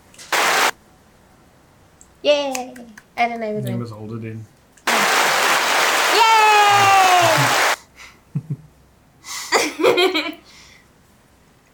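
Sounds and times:
speech: 2.2s - 4.6s, 10.0s - 10.4s
clapping and applause: 4.9s - 7.8s.

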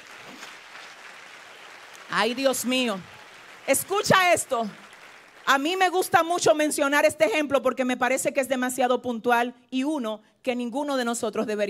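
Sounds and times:
audience applause: 0.0s - 5.8s
speech: 2.1s - 4.8s, 5.5s - 11.6s.

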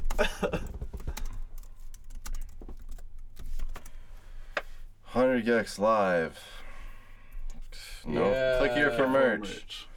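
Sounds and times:
typing on a computer keyboard while looking up merch online: 0.0s - 4.0s
speech: 5.2s - 6.6s, 8.0s - 9.9s.

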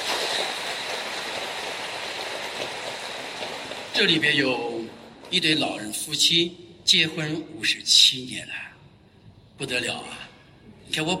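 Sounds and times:
audience applause: 0.0s - 5.1s
speech: 4.0s - 4.7s, 5.3s - 8.7s, 9.6s - 10.2s, 10.9s - 11.1s.

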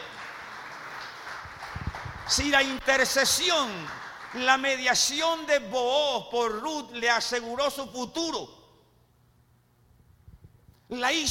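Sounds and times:
audience applause: 0.0s - 4.5s
speech: 2.3s - 8.6s, 10.9s - 11.2s.

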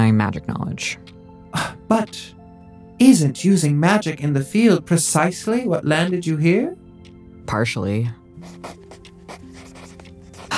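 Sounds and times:
speech: 0.0s - 2.4s, 3.0s - 6.8s, 7.5s - 8.8s
pen scratching on paper taking notes: 8.4s - 10.5s.

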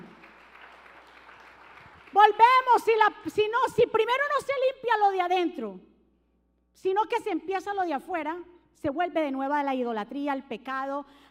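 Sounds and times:
loud applause: 0.0s - 2.2s
speech: 2.2s - 5.9s, 6.8s - 11.2s.

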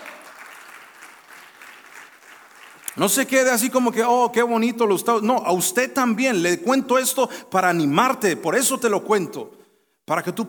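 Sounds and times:
audience applause: 0.0s - 2.9s
speech: 3.0s - 10.4s.

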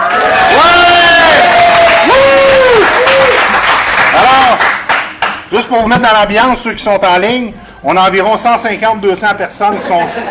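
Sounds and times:
long rising and falling whoops: 0.0s - 4.6s
live bar audience cheering: 0.0s - 4.9s
clapping: 1.2s - 5.5s
speech: 5.5s - 10.2s
laughter: 9.6s - 10.2s.

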